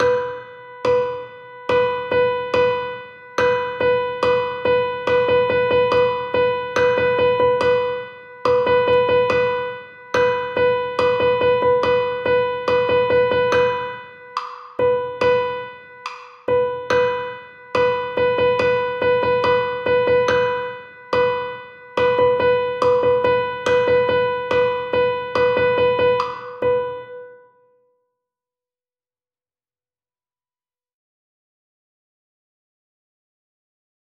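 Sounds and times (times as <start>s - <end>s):
rhythm exercise: 0.0s - 27.2s.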